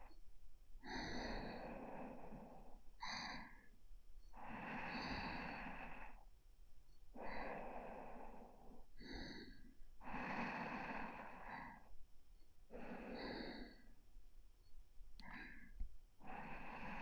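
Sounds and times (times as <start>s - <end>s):
sleeping breath: 0.8s - 6.2s, 7.1s - 12.0s, 12.7s - 14.0s, 15.2s - 17.0s.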